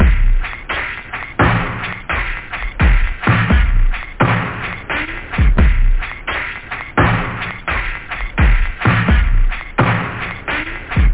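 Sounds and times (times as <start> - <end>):
groove music: 0.0 - 11.1.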